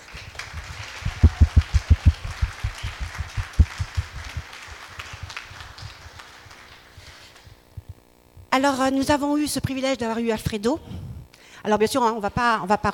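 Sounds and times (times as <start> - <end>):
audience applause: 0.0 - 7.0
speech: 8.6 - 11.0, 11.6 - 12.9.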